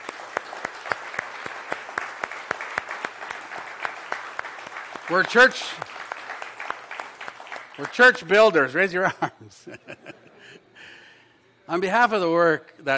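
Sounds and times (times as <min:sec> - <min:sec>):
audience applause: 0:00.0 - 0:08.4
speech: 0:05.1 - 0:05.9, 0:07.8 - 0:10.6, 0:11.7 - 0:12.9
laughter: 0:09.0 - 0:11.0.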